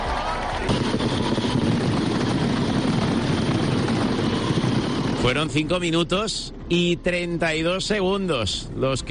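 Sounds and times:
mascletà firecracker barrage: 0.2 - 4.1
speech: 5.3 - 9.0.

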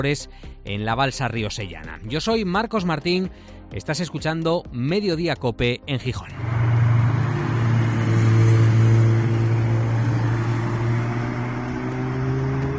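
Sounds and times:
speech: 0.0 - 6.6
cars revving at an illegal street race: 6.3 - 12.7.

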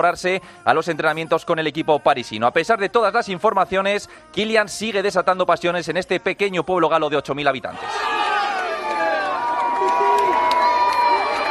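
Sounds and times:
speech: 0.0 - 8.2
fans shouting in support: 7.8 - 11.4.

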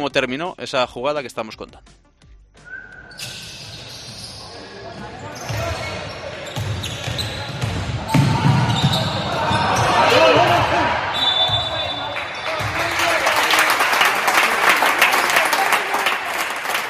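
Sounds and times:
speech: 0.0 - 2.0
squeaking basketball play: 2.6 - 10.3
basketball crowd applause and cheering: 9.3 - 16.8.

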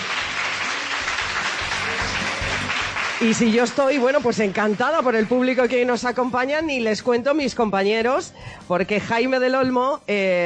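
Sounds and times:
audience applause: 0.0 - 5.4
speech: 3.2 - 10.4.

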